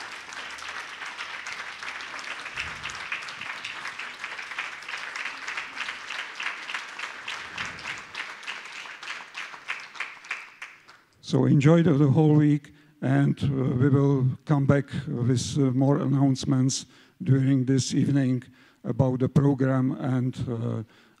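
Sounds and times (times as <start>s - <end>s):
audience applause during a flower garland offering at a devotional gathering: 0.0s - 11.0s
speech: 11.3s - 21.1s.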